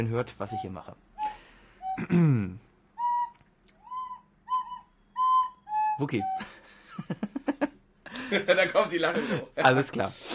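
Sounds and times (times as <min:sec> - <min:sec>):
speech: 0:00.0 - 0:01.4, 0:02.0 - 0:02.7, 0:06.0 - 0:07.6, 0:08.3 - 0:10.3
person whistling: 0:00.5 - 0:06.7.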